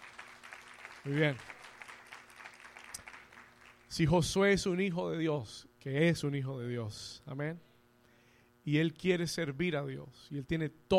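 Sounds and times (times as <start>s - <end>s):
audience applause: 0.0s - 3.9s
speech: 1.0s - 1.6s, 3.9s - 7.7s, 8.7s - 10.9s.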